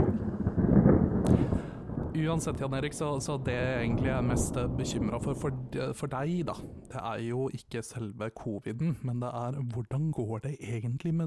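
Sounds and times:
thunder sound effect: 0:00.0 - 0:07.2
speech: 0:02.2 - 0:11.2.

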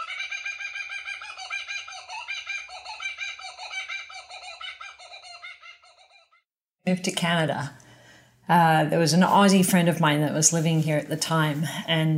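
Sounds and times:
kookaburras laughing: 0:00.0 - 0:06.4
speech: 0:06.9 - 0:07.8, 0:08.5 - 0:12.1.

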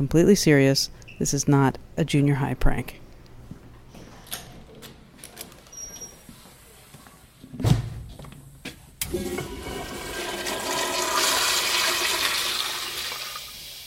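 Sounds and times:
speech: 0:00.0 - 0:03.0
toilet flushing: 0:09.0 - 0:13.8.

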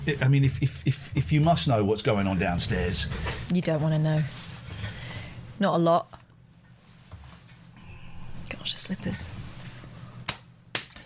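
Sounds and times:
speech: 0:00.0 - 0:04.5, 0:05.6 - 0:06.2, 0:08.6 - 0:09.4
quiet low hum: 0:00.0 - 0:11.0
hand slapping knee: 0:10.2 - 0:11.0.

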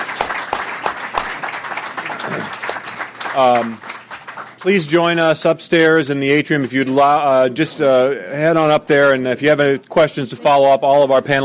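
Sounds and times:
crowd applauding: 0:00.0 - 0:05.4
speech: 0:02.3 - 0:02.6, 0:03.4 - 0:03.9, 0:04.6 - 0:11.4.

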